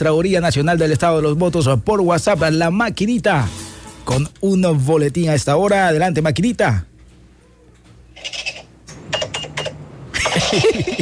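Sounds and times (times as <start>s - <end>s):
speech: 0.0s - 6.9s, 10.3s - 10.9s
cash register counting money: 8.2s - 10.9s.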